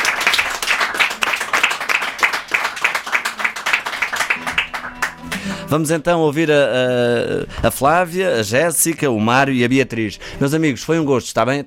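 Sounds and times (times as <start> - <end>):
audience applause: 0.0 - 5.6
speech: 5.7 - 11.6.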